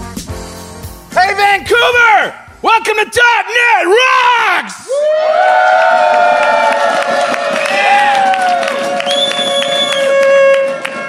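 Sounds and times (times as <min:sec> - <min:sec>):
speech: 0:01.5 - 0:07.0
small live audience cheering at the TechDays conference in Vancouver: 0:03.9 - 0:11.0.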